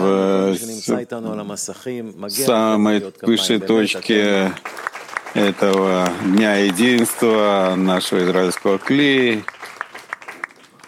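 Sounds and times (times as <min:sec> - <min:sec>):
speech: 0:00.0 - 0:09.7
hand claps at a festive unity day gathering: 0:04.4 - 0:10.8.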